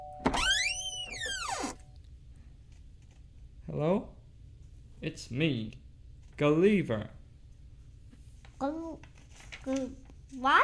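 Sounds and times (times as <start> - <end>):
door creaking open: 0.2 - 1.9
speech: 3.7 - 4.2, 5.0 - 5.8, 6.4 - 7.2, 8.6 - 10.6.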